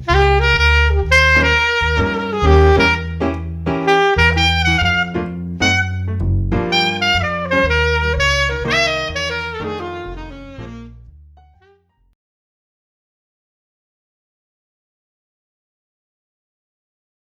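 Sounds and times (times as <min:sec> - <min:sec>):
keyboard playing: 0:00.0 - 0:11.9.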